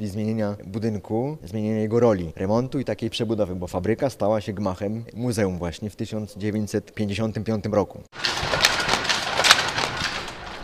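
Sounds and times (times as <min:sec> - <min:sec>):
speech: 0:00.0 - 0:08.5
old weaving looms running: 0:08.2 - 0:10.6.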